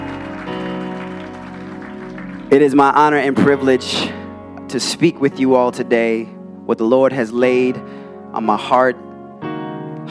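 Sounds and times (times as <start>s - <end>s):
crowd applauding: 0.0s - 3.3s
sustained keyboard or organ chords: 0.0s - 10.1s
speech: 2.5s - 9.1s.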